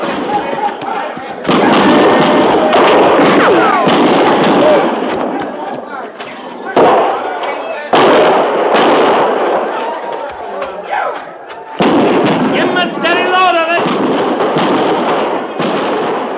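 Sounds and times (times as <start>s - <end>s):
people shouting: 0.0s - 8.3s, 9.5s - 13.8s
gunfire as troops open fire: 0.0s - 9.8s, 11.8s - 16.3s.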